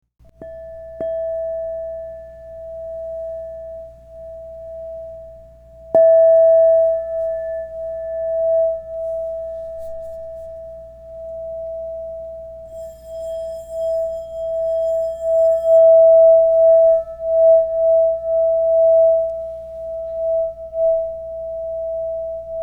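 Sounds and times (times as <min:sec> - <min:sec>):
crystal singing bowls ringing: 0:00.4 - 0:22.6.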